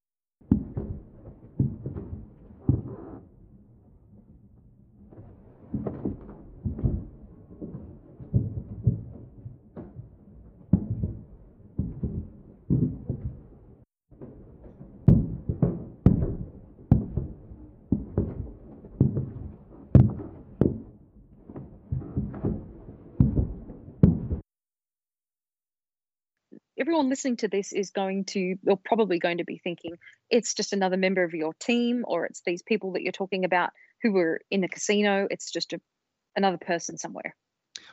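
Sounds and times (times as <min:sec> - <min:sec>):
footsteps at walking pace: 0:00.5 - 0:24.4
speech: 0:26.8 - 0:37.4.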